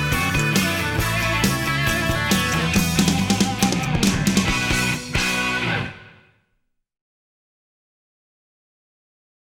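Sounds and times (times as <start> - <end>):
band jamming without horns: 0.0 - 6.1.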